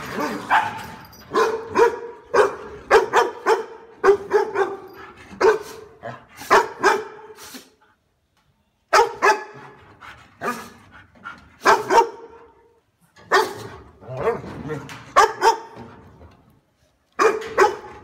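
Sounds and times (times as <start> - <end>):
dog barking: 0.2 - 4.9, 6.4 - 7.3, 8.9 - 9.7, 11.6 - 12.5, 13.3 - 14.3, 15.1 - 15.8, 17.1 - 18.0.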